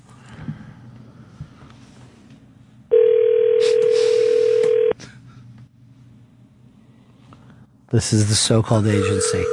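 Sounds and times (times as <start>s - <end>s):
telephone line ringing: 2.9s - 5.0s, 8.9s - 9.5s
speech: 8.0s - 9.5s.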